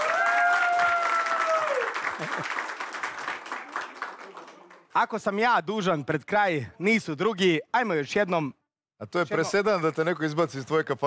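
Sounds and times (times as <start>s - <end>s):
television show studio audience applause: 0.0s - 5.1s
speech: 2.2s - 2.7s, 5.0s - 11.0s.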